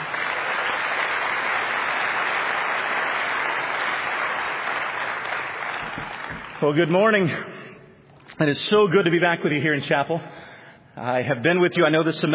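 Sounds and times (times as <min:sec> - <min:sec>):
chapel audience applause welcoming a preacher: 0:00.0 - 0:06.9
speech: 0:06.6 - 0:07.6, 0:08.4 - 0:12.3.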